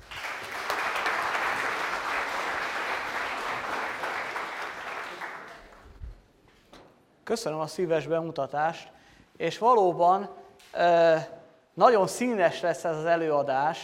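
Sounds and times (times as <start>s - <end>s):
audience applause: 0.0s - 5.9s
speech: 7.3s - 13.8s.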